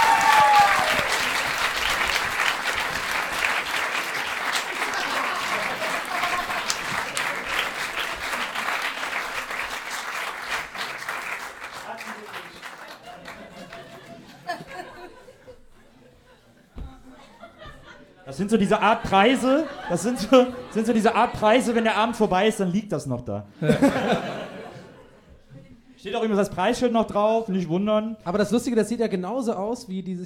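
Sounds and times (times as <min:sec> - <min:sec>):
laughter: 0:00.0 - 0:09.5, 0:12.0 - 0:22.3, 0:23.5 - 0:25.8
audience applause: 0:00.0 - 0:14.5
speech: 0:18.4 - 0:24.4, 0:26.2 - 0:30.2.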